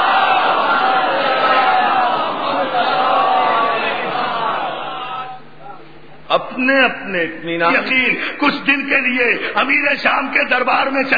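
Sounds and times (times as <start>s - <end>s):
large crowd chanting salawat in unison: 0.0s - 5.4s
speech: 6.6s - 11.1s.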